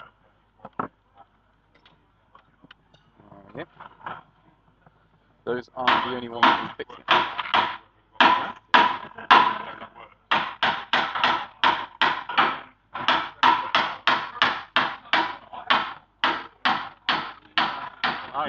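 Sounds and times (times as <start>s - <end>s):
speech: 3.6s - 3.9s, 5.5s - 7.2s
heavyweight combat robots banging impacts in arena: 5.8s - 18.4s.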